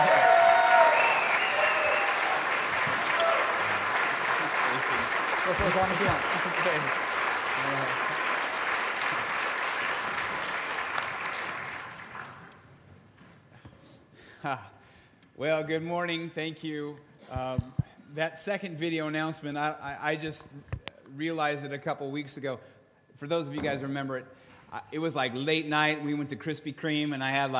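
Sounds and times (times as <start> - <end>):
church congregation clapping to welcome a pastor: 0.0 - 12.6
speech: 5.6 - 8.1, 15.4 - 27.5.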